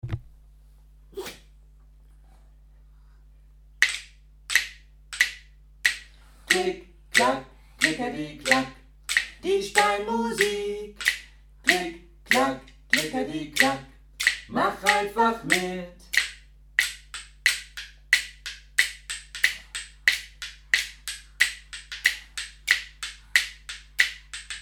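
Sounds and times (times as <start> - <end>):
clicking and clacking: 3.8 - 24.6.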